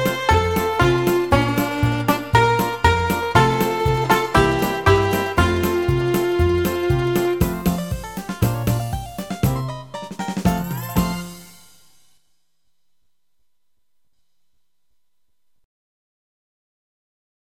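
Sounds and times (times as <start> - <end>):
bluegrass music: 0.0 - 11.5.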